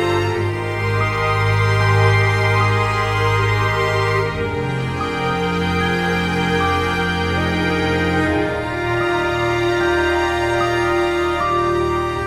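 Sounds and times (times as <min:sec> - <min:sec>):
cello: 0:00.0 - 0:12.2
ethereal strings: 0:00.0 - 0:12.2.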